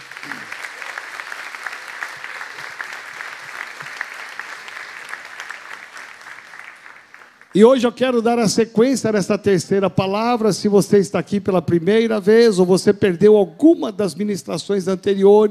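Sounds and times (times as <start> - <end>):
audience applause: 0.0 - 7.6
speech: 7.6 - 15.4.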